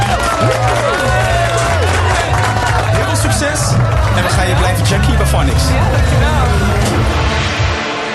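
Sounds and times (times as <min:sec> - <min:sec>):
applause and cheering: 0:00.0 - 0:08.0
speech: 0:04.8 - 0:07.2.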